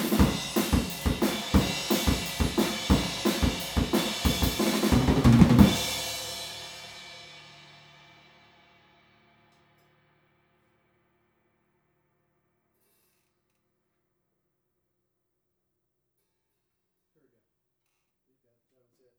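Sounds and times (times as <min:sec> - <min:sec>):
drums recorded with omni PZM microphone: 0:00.0 - 0:09.6.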